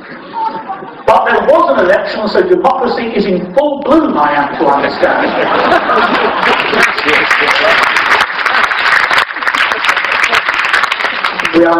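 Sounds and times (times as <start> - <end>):
speech: 1.5 - 7.8, 11.6 - 11.7
laughter: 4.4 - 11.3
audience clapping: 5.8 - 11.7.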